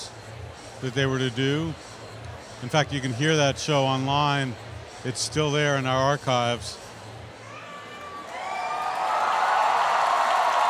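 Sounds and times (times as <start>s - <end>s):
speech: 0.8s - 1.9s, 2.6s - 6.8s
concert crowd cheering as house lights go off: 7.4s - 10.6s.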